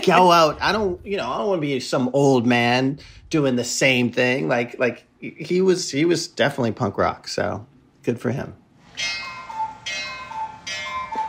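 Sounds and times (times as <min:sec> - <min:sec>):
speech: 0:00.0 - 0:09.3
thin steady high tone: 0:08.8 - 0:11.2
cuckoo clock in a home clicking: 0:09.0 - 0:11.2.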